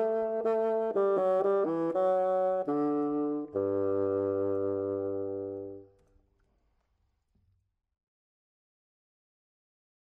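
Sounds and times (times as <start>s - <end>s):
bassoon: 0.0s - 5.9s.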